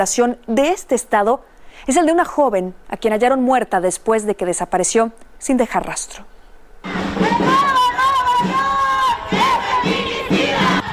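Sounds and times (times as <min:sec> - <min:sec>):
speech: 0:00.0 - 0:06.3
women's collectives protesting in Monterrey Mexico: 0:07.2 - 0:10.9.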